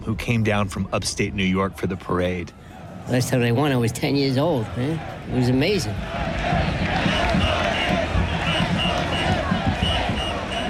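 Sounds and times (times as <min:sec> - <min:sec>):
speech: 0:00.1 - 0:06.6
excited parade crowd: 0:04.9 - 0:10.6.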